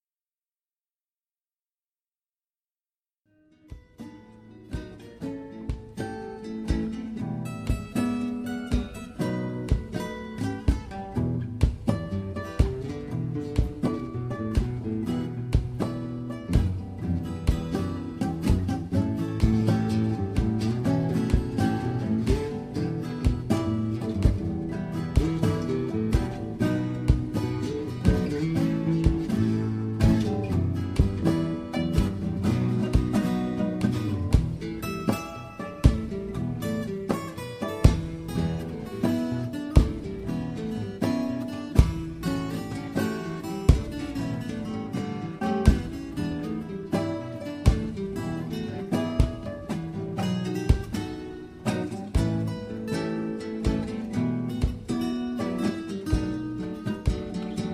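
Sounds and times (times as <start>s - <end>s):
blues trio playing: 3.7s - 57.7s.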